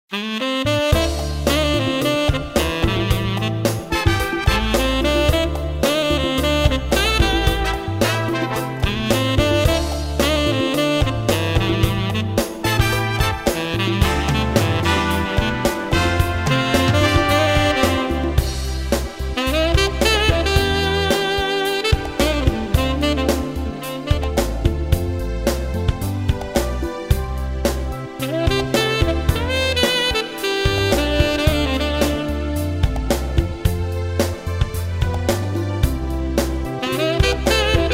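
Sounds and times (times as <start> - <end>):
jazz funk music: 0.1 - 37.9.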